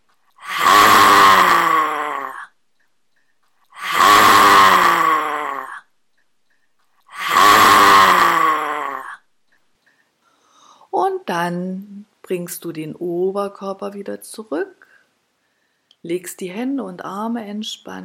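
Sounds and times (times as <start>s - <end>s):
person roaring like a lion: 0.4s - 2.5s, 3.8s - 5.8s, 7.1s - 9.2s
speech: 11.5s - 14.8s, 16.0s - 18.0s.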